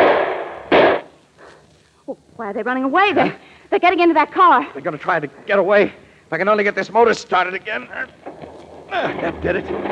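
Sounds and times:
gunshots: 0:00.0 - 0:01.1, 0:08.2 - 0:09.9
speech: 0:02.1 - 0:08.3, 0:08.9 - 0:09.9.

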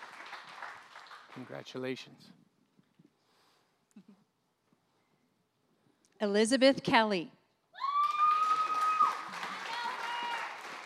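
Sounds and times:
speech: 0:01.4 - 0:02.5, 0:06.2 - 0:07.4
audience cheering and applause: 0:07.8 - 0:10.8.

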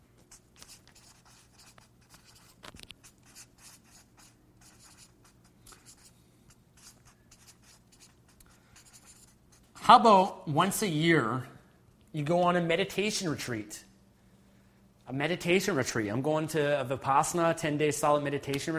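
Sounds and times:
notes being written down by hand: 0:00.2 - 0:06.1, 0:06.8 - 0:09.8
speech: 0:09.9 - 0:11.5, 0:12.2 - 0:13.9, 0:15.1 - 0:18.7.

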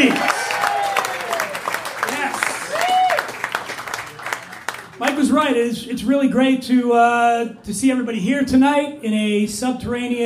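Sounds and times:
audience applause: 0:00.0 - 0:05.3
speech: 0:05.5 - 0:10.2.

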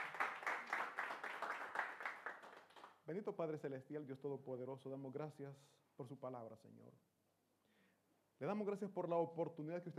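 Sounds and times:
applause: 0:00.0 - 0:03.1
speech: 0:03.1 - 0:07.1, 0:08.4 - 0:09.9.

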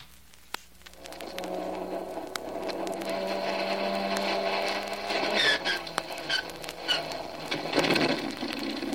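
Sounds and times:
aircraft engine number one starting up: 0:01.1 - 0:08.9.

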